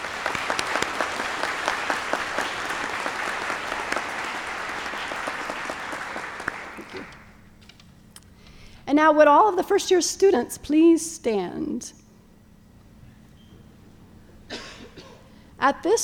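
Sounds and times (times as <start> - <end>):
audience applause: 0.0 - 7.4
speech: 9.0 - 12.0, 15.6 - 16.0.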